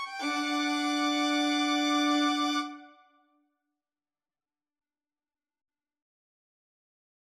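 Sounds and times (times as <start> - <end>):
cello playing a suite: 0.2 - 3.0.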